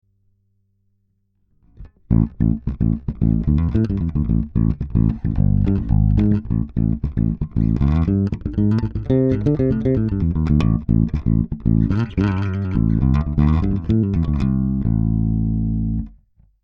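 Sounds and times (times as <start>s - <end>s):
bass through goldmike mk2 limiter: 1.6s - 16.6s.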